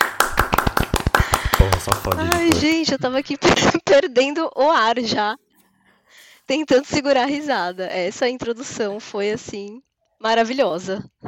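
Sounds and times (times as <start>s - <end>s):
hand claps: 0.0s - 2.9s
speech: 1.8s - 5.4s, 6.1s - 11.2s.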